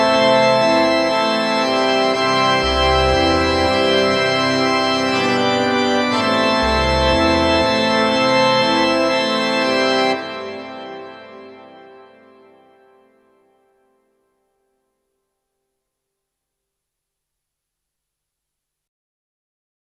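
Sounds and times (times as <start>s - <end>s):
church organ: 0.0s - 14.5s.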